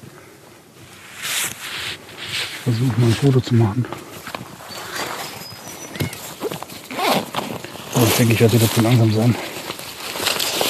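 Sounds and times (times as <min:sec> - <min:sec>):
rustling and crackling: 0:00.2 - 0:10.6
speech: 0:02.6 - 0:04.0, 0:08.2 - 0:09.6
black cockatoo screeching: 0:05.4 - 0:07.1.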